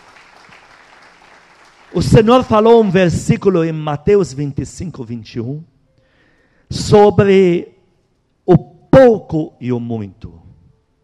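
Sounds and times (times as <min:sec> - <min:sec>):
audience applause: 0:00.0 - 0:03.1
speech: 0:01.9 - 0:05.7, 0:06.7 - 0:07.7, 0:08.5 - 0:10.4.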